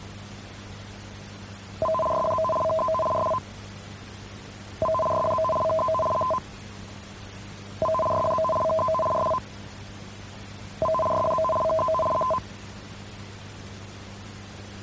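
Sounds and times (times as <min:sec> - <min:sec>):
emergency warning broadcast system test signal: 0:01.8 - 0:03.4, 0:04.8 - 0:06.4, 0:07.8 - 0:09.4, 0:10.8 - 0:12.4.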